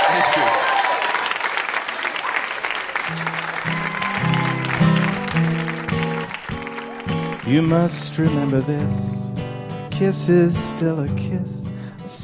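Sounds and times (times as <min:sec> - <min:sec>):
audience applause: 0:00.0 - 0:08.2
speech: 0:07.5 - 0:09.2, 0:10.0 - 0:12.2.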